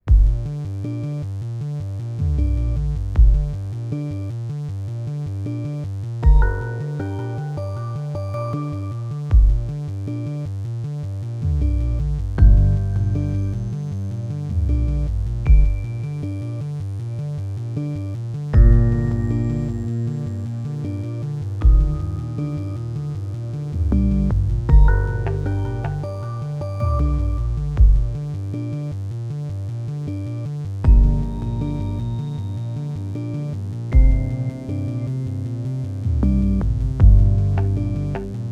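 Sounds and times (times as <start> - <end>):
electronic music: 0.0 - 38.5.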